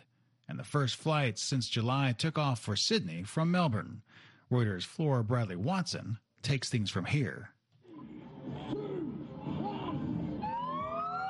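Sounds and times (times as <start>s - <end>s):
speech: 0.5s - 7.6s
sirens as cars cross the border from New South Wales into Victoria: 9.2s - 11.2s.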